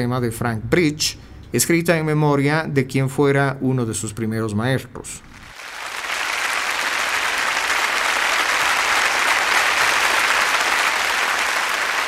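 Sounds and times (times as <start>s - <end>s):
speech: 0.0s - 5.4s
audience applause as conductor enters stage: 5.4s - 12.0s.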